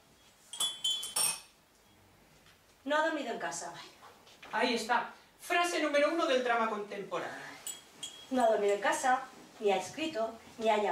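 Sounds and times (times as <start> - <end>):
teaspoon stirring coffee in a porcelain cup: 0.5 - 1.5, 7.6 - 8.8
speech: 2.8 - 7.5, 8.3 - 10.9.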